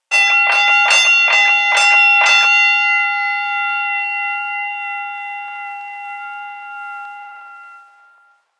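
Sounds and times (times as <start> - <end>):
boxing fight bell: 0.0 - 8.5.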